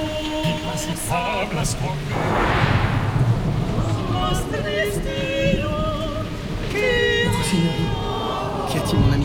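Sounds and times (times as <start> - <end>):
storm rain: 0.0 - 9.2
speech: 0.8 - 3.2, 4.3 - 5.8, 6.7 - 8.0
storm thunder: 2.0 - 6.7.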